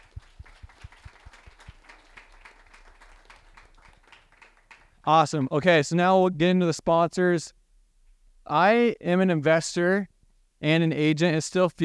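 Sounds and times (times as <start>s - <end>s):
audience applause: 0.0s - 5.6s
speech: 5.0s - 7.6s, 8.5s - 11.8s.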